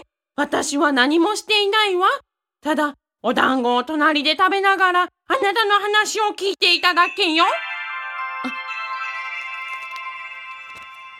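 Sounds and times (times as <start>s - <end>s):
speech: 0.4s - 7.6s
phone email notification tone: 7.2s - 11.1s.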